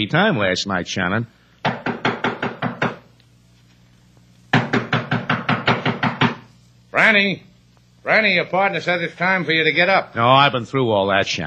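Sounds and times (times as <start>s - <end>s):
speech: 0.0s - 1.4s, 7.1s - 11.4s
rapid loud knocking on a door: 1.6s - 3.1s, 4.5s - 6.4s.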